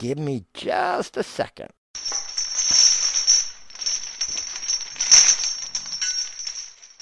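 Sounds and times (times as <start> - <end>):
speech: 0.0 - 1.8
rattling chains sound effect: 2.0 - 7.0.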